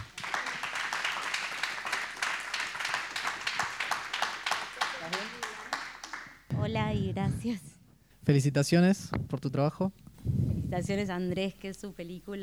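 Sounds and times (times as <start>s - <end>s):
audience applause: 0.0s - 6.5s
speech: 6.7s - 12.4s.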